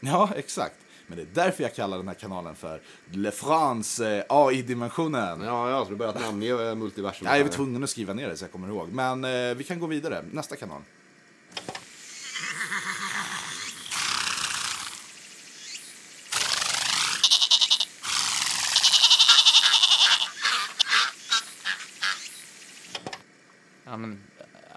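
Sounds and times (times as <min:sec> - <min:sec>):
speech: 0:00.0 - 0:11.0
animals bleating: 0:12.3 - 0:15.1, 0:16.3 - 0:22.3.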